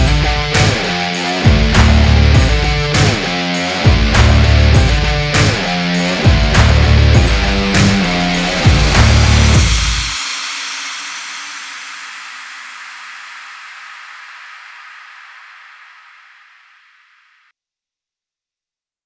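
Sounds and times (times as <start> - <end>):
stock music: 0.0 - 10.2.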